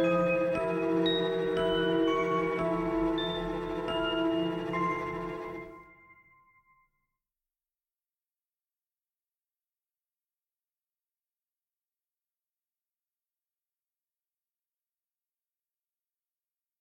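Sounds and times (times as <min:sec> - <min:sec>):
instrumental music: 0:00.0 - 0:06.4.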